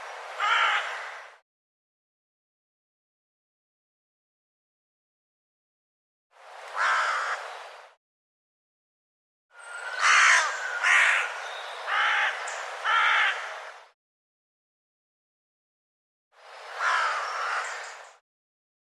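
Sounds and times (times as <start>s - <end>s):
bird harsh hoarse cawing calls: 0.4s - 1.4s, 6.7s - 7.6s, 9.8s - 13.8s, 16.8s - 18.2s.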